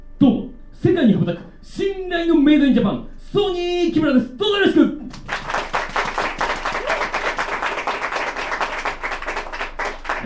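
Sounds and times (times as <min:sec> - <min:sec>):
speech: 0:00.2 - 0:05.0
audience applause: 0:05.1 - 0:10.2.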